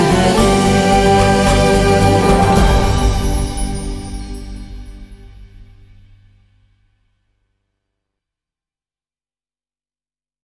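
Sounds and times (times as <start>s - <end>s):
instrumental music: 0.0s - 6.1s.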